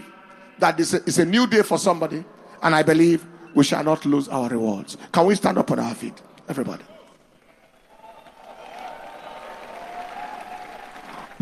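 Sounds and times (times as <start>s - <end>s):
speech: 0.6s - 6.9s
audience clapping: 7.4s - 11.4s.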